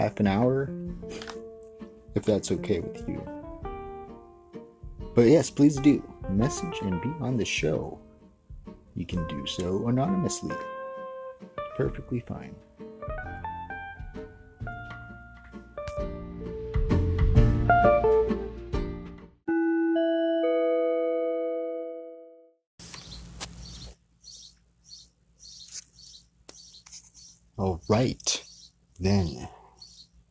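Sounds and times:
speech: 0.0 - 1.3, 2.2 - 3.4, 5.2 - 8.0, 9.0 - 10.7, 11.8 - 12.6, 27.9 - 28.4, 29.0 - 29.5
music: 0.0 - 22.6
loud bird chirping outside the window: 22.8 - 30.3.

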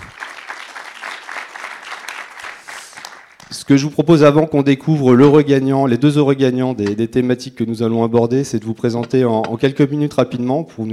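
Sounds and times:
audience applause: 0.0 - 3.5
speech: 3.5 - 10.9.

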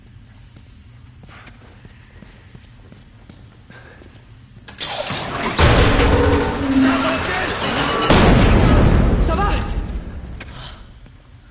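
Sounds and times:
security door mechanism rumbling and grinding shut: 5.4 - 9.2.

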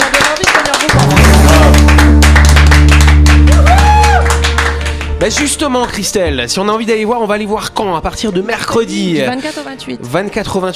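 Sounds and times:
audience applause: 0.0 - 5.6
speech: 5.2 - 10.7.

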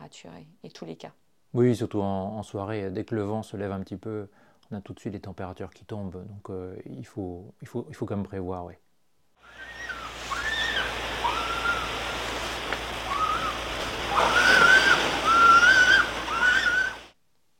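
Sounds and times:
speech: 0.1 - 8.8
New Zealand fur seal calling: 9.4 - 12.2, 13.0 - 17.1
surf: 9.4 - 17.2.

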